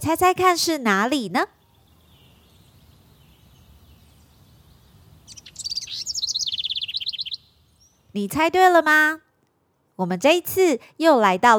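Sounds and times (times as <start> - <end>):
speech: 0.0 - 1.6, 8.2 - 9.2, 10.0 - 11.5
birds chirping in a park: 0.4 - 9.0.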